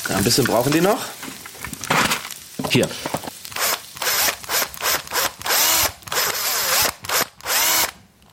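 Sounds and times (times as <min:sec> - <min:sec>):
speech: 0:00.2 - 0:01.3, 0:02.7 - 0:03.2
cordless drill drilling into material: 0:03.6 - 0:08.0.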